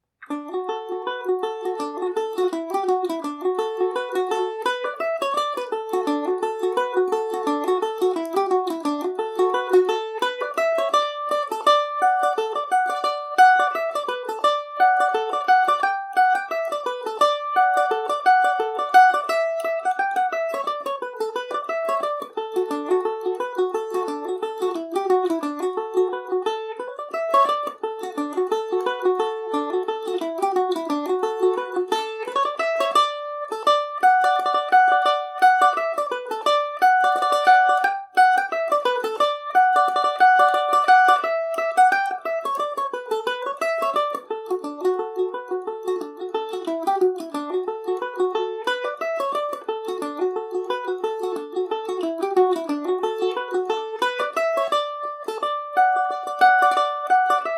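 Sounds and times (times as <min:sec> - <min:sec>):
mandolin in D major: 0:00.0 - 0:57.5.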